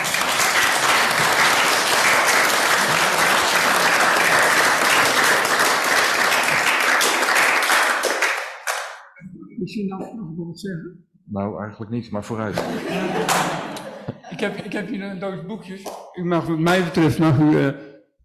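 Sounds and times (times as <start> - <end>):
audience applause: 0.0 - 9.0, 12.6 - 14.0
laughter: 2.6 - 4.3, 12.4 - 15.4, 16.8 - 17.8
speech: 9.7 - 13.8, 14.4 - 17.9.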